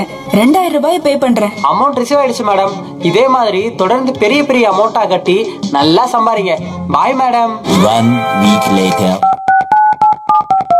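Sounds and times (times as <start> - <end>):
speech: 0.0 - 9.4
phone call dialing tone: 8.1 - 10.7.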